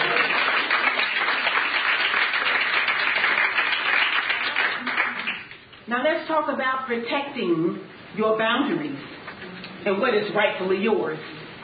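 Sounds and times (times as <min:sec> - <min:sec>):
audience hand clapping: 0:00.0 - 0:05.7
speech: 0:05.9 - 0:09.1, 0:09.8 - 0:11.4.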